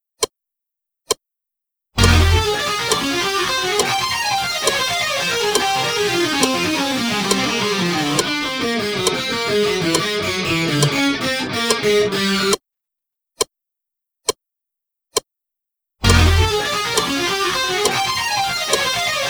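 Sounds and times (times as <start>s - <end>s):
slow music loop: 2.0s - 12.6s, 16.0s - 19.0s.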